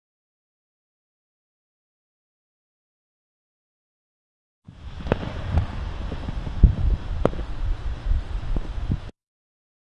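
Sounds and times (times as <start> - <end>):
fire: 4.7 - 9.2.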